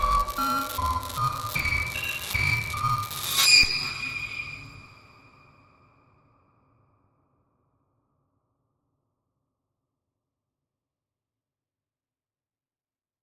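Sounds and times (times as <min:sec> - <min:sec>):
synth: 0:00.0 - 0:05.0.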